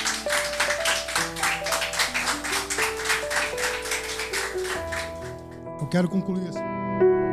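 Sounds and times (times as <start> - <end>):
audience applause: 0.0 - 5.7
speech: 5.9 - 7.2.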